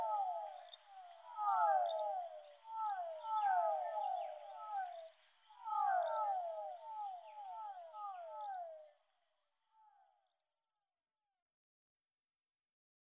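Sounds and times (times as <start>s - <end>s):
Fischer's dwarf frog chorus: 0.0s - 9.1s.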